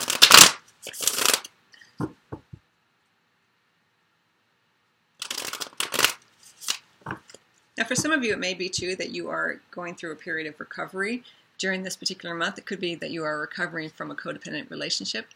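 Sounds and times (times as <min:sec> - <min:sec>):
Sensual Wicca Tarot cards being shuffled: 0:00.0 - 0:02.2, 0:05.2 - 0:09.0
speech: 0:07.8 - 0:15.3.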